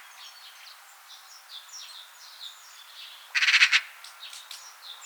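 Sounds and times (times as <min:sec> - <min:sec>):
magpie call and song: 0:03.3 - 0:04.0.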